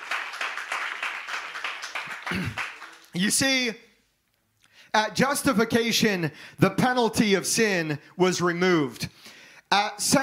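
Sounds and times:
audience hand clapping: 0:00.0 - 0:03.5
speech: 0:02.3 - 0:03.9, 0:04.9 - 0:10.2.

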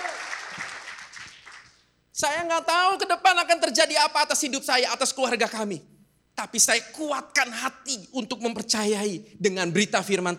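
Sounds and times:
audience applause: 0:00.0 - 0:01.8
speech: 0:02.2 - 0:10.3.

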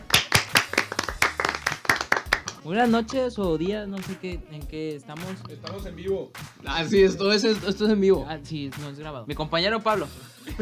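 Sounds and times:
small group clapping: 0:00.0 - 0:02.6
speech: 0:02.6 - 0:10.6.

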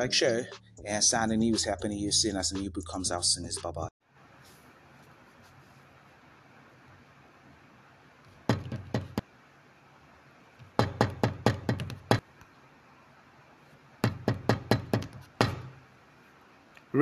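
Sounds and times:
speech: 0:00.0 - 0:03.9
knocking: 0:08.5 - 0:09.2, 0:10.8 - 0:12.2, 0:14.0 - 0:15.8.

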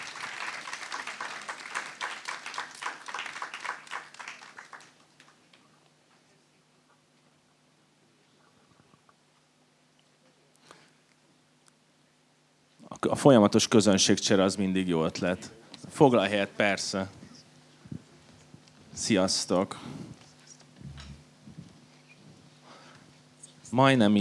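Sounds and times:
audience applause: 0:00.0 - 0:05.6
speech: 0:13.0 - 0:17.2, 0:19.1 - 0:20.1, 0:23.8 - 0:24.2.

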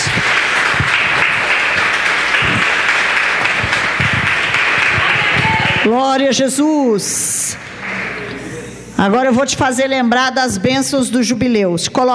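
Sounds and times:
crowd of worshippers applauding: 0:00.0 - 0:06.0, 0:07.6 - 0:08.3
speech: 0:05.8 - 0:07.4, 0:09.0 - 0:12.1.

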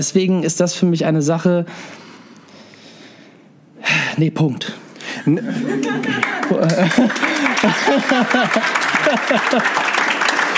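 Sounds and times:
speech: 0:00.0 - 0:02.1, 0:04.2 - 0:10.0
voices talking and laughing: 0:05.3 - 0:09.6
audience applause: 0:05.5 - 0:10.5.

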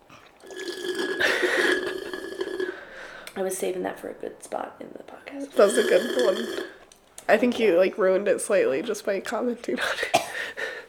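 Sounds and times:
slurping sip of a drink: 0:00.1 - 0:03.0, 0:05.6 - 0:06.8
speech: 0:03.4 - 0:10.2.

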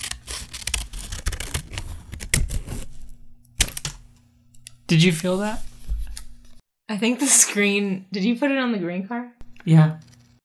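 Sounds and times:
scissors snipping: 0:00.0 - 0:06.6, 0:09.4 - 0:10.4
speech: 0:04.9 - 0:05.7, 0:06.9 - 0:10.1.

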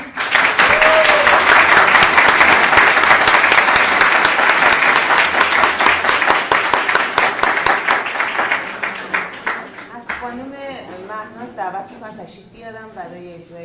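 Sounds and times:
audience applause: 0:00.0 - 0:10.2.

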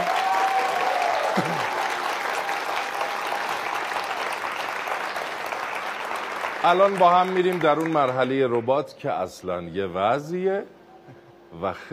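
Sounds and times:
audience applause: 0:00.0 - 0:08.8
speech: 0:06.6 - 0:10.8, 0:11.5 - 0:11.9.

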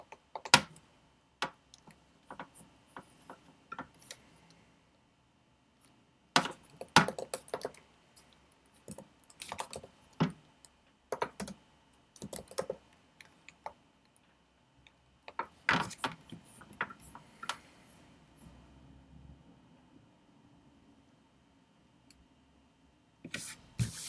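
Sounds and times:
computer keyboard and mouse clicks: 0:00.0 - 0:00.8, 0:06.4 - 0:07.8, 0:08.8 - 0:11.6, 0:12.2 - 0:14.2
soft hiss and low hum: 0:00.0 - 0:24.0.

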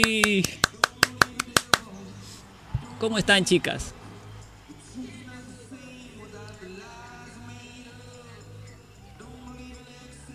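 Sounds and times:
speech: 0:00.0 - 0:00.6, 0:03.0 - 0:04.0
sharp hand claps: 0:00.0 - 0:01.9
faint low thump: 0:02.7 - 0:02.9.

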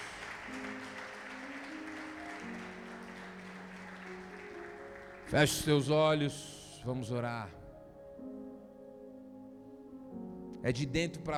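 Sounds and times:
audience applause: 0:00.0 - 0:06.4
sustained organ or keyboard chords: 0:00.0 - 0:11.3
speech: 0:05.3 - 0:07.6, 0:10.6 - 0:11.3.

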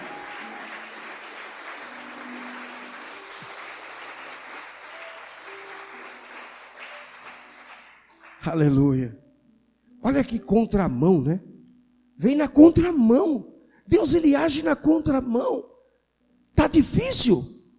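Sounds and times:
audience applauding joyfully: 0:00.0 - 0:08.4
speech: 0:08.4 - 0:09.2, 0:10.0 - 0:11.5, 0:12.2 - 0:15.7, 0:16.7 - 0:17.6.

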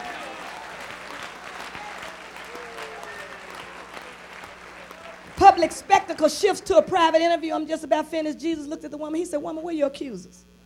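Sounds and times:
audience clapping hands: 0:00.0 - 0:07.0
speech: 0:05.6 - 0:10.5.

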